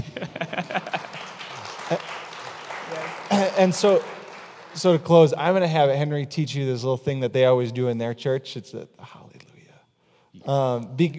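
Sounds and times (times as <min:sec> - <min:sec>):
laughter: 0:00.0 - 0:05.0
audience clapping: 0:00.0 - 0:05.7
speech: 0:03.6 - 0:04.2, 0:04.8 - 0:09.2, 0:10.4 - 0:11.1.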